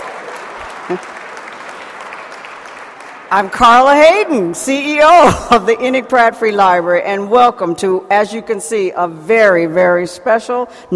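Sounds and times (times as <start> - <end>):
audience applause: 0.0 - 3.3
speech: 0.9 - 1.2, 3.3 - 10.9.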